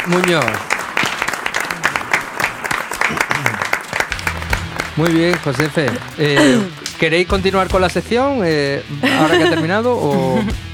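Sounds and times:
speech: 0.0 - 0.7, 5.0 - 10.7
audience applause: 0.0 - 7.7
laughter: 1.5 - 7.8, 8.8 - 10.6.

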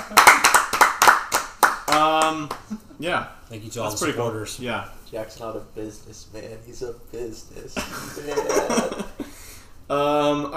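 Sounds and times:
people clapping: 0.0 - 2.8
speech: 2.3 - 9.3, 9.9 - 10.5
laughter: 7.8 - 9.3.

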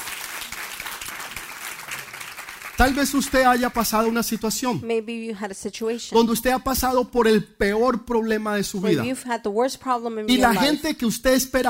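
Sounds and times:
audience applauding: 0.0 - 4.6
speech: 2.8 - 11.6.

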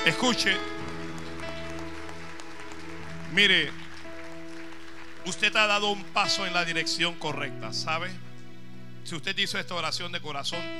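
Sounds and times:
speech: 0.0 - 0.8, 3.3 - 3.8, 5.2 - 8.2, 9.1 - 10.7
audience applause: 0.0 - 6.7.

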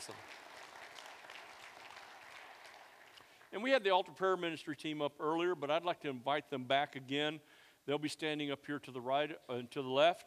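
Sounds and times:
church audience applauding to welcome guests: 0.0 - 3.5
speech: 3.5 - 10.2.

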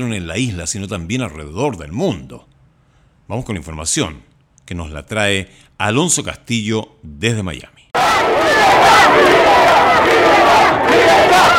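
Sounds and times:
speech: 0.0 - 2.5, 3.3 - 7.8, 9.1 - 9.5
crowd of protesters shouting: 8.0 - 11.5.

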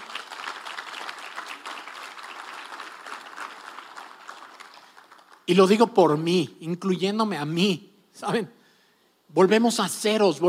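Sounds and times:
audience applause: 0.0 - 5.8
speech: 5.5 - 8.6, 9.3 - 10.4.

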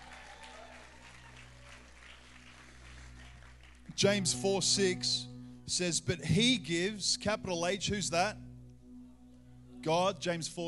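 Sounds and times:
audience round of applause: 0.0 - 3.9
speech: 4.0 - 8.5, 9.8 - 10.6.

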